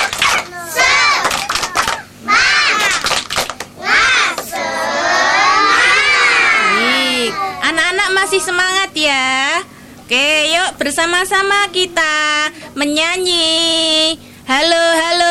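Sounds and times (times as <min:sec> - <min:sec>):
children shouting syllables in a clapping chant: 0:00.0 - 0:03.1, 0:03.8 - 0:07.7
children clapping rhythmically in a spirit clap chant: 0:00.0 - 0:04.6
children's loud group cheer: 0:00.0 - 0:07.7
speech: 0:08.3 - 0:09.4, 0:10.1 - 0:15.2.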